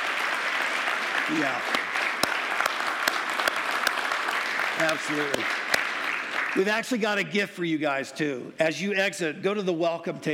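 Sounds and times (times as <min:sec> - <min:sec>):
audience applause: 0:00.0 - 0:07.1
speech: 0:01.3 - 0:01.8, 0:04.8 - 0:05.7, 0:06.5 - 0:10.3.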